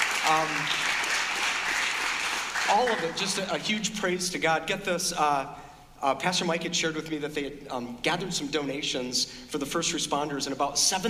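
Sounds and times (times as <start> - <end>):
voice rising over applause: 0.0 - 3.4
church audience clapping: 0.0 - 3.6
speech: 0.3 - 0.9, 2.7 - 11.0.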